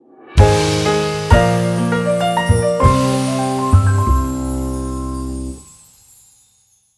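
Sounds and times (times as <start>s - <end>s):
room complete jingle: 0.4s - 5.9s.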